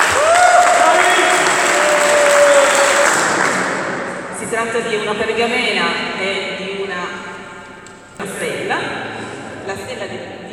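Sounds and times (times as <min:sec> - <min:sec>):
audience applause: 0:00.0 - 0:04.3
speech: 0:04.8 - 0:07.2.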